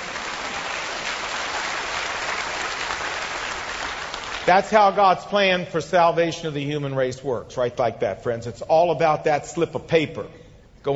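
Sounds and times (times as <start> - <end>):
audience clapping: 0.0 - 5.0
speech: 4.5 - 10.9.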